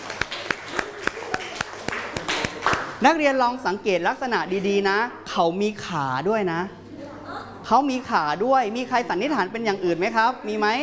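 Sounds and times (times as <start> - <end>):
students clapping for a classmate in a classroom: 0.0 - 3.0
speech: 3.0 - 6.8, 7.7 - 10.8.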